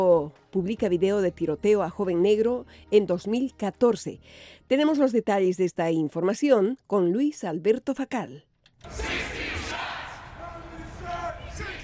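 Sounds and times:
speech: 0:00.0 - 0:09.3
hundreds of protesters chanting in the streets of downtown Chicago: 0:08.8 - 0:11.8.

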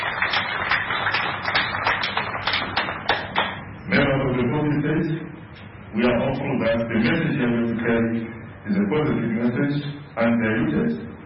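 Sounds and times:
audience applause: 0:00.0 - 0:03.6
speech: 0:04.7 - 0:11.0.

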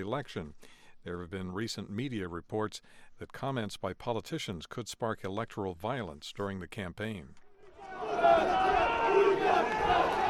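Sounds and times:
speech: 0:00.0 - 0:10.2
right-wing activists shouting anti-immigration slogans: 0:07.7 - 0:10.2.

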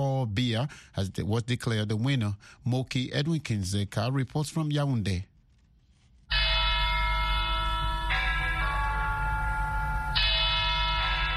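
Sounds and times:
speech: 0:00.2 - 0:05.3
church bells ringing at Our Lady of Victory's Cathedral in Yaoundé: 0:06.3 - 0:11.3.

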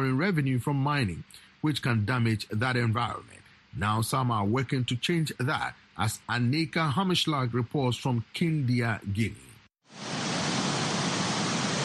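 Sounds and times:
speech: 0:00.0 - 0:10.2
water gushing over slippery rocks and through a cliff near Kindia, Guinea: 0:09.9 - 0:11.8.

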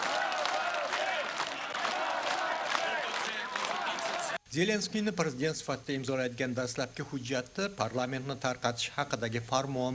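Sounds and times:
Ukrainian crowd applauding outside parliament: 0:00.0 - 0:04.4
speech: 0:04.5 - 0:09.9.

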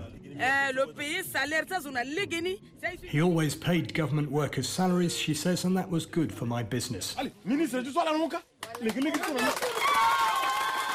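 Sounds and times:
speech: 0:00.4 - 0:10.2
villagers applauding a speech in Nanagribizi: 0:08.6 - 0:10.9.

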